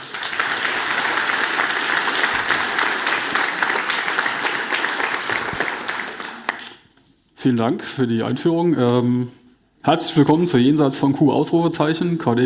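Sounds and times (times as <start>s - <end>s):
audience applause: 0.0s - 6.8s
speech: 7.4s - 12.4s.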